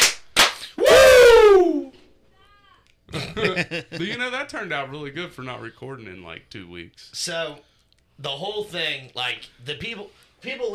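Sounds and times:
hand claps: 0.0s - 0.9s
vocal whoop sliding downward in pitch: 0.8s - 2.1s
laughter: 3.1s - 4.2s
speech: 3.4s - 10.7s.

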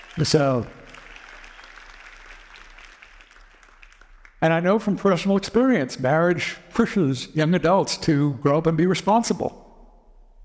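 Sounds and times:
audience applause: 0.0s - 4.4s
speech: 0.2s - 0.8s, 4.4s - 9.6s.

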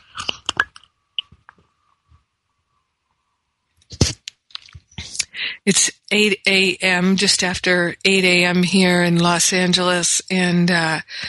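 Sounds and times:
sipping hot tea from a cup: 0.0s - 1.6s
speech: 5.6s - 11.2s.

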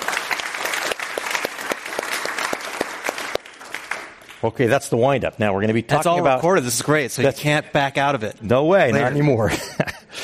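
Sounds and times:
audience at a Commonwealth Club event applauding to welcome a guest speaker: 0.0s - 4.7s
speech: 4.4s - 9.9s
laughter: 9.0s - 10.2s.

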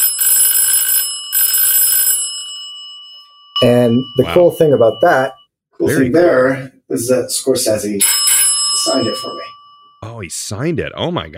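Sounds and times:
antique doorbell buzzer ringing: 0.0s - 5.4s, 8.0s - 10.0s
speech: 3.6s - 8.2s, 8.9s - 9.6s, 10.2s - 11.3s.

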